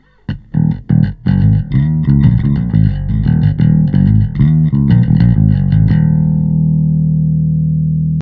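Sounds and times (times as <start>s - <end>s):
bass: 0.0s - 8.1s.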